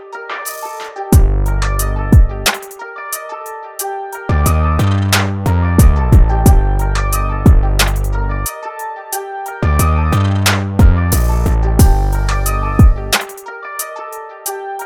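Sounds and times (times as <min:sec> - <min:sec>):
trap beat: 0:00.5 - 0:02.8, 0:04.4 - 0:08.2, 0:09.7 - 0:13.4.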